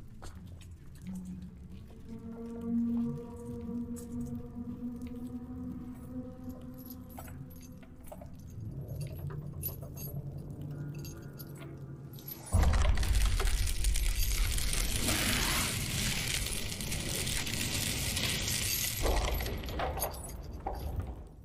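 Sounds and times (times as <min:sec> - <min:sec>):
creaking groans: 0:00.0 - 0:21.4
rattling chains: 0:06.0 - 0:21.4.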